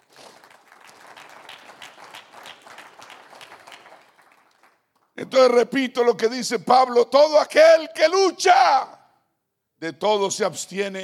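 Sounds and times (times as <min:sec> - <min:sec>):
audience applause: 0:00.0 - 0:05.1
speech: 0:05.2 - 0:09.0, 0:09.8 - 0:11.0.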